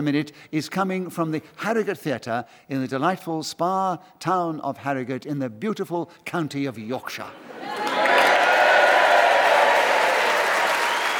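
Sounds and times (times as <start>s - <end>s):
speech: 0.0s - 7.8s
faint cheers: 7.6s - 11.1s
large indoor audience applauding at Harrogate Theatre: 7.6s - 11.1s.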